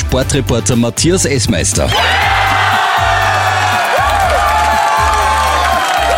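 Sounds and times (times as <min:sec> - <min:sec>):
speech: 0:00.1 - 0:02.8
crowd cheering at public viewing: 0:01.9 - 0:06.1.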